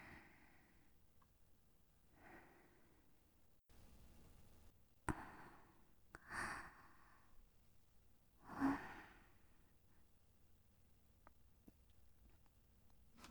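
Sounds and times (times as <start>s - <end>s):
person breathing in sleep: 2.1s - 3.1s, 5.1s - 7.4s, 8.4s - 10.0s.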